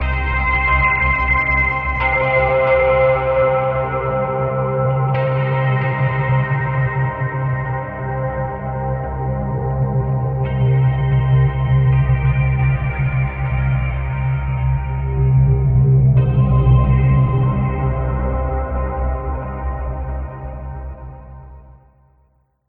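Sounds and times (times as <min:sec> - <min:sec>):
guitar ending: 0:00.0 - 0:22.0.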